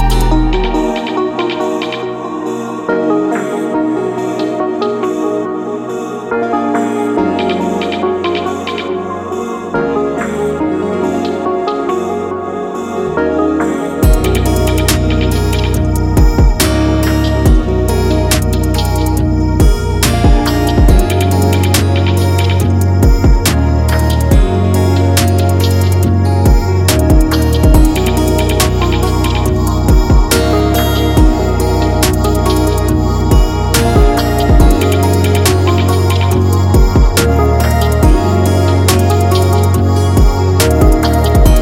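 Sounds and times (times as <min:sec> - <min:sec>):
melodic trap beat: 0:00.0 - 0:41.6.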